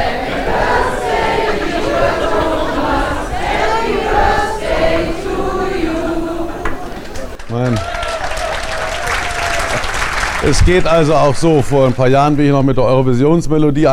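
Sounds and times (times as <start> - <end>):
audience singing a birthday song: 0.0 - 7.5
laughter: 0.0 - 10.0
speech: 10.5 - 13.9.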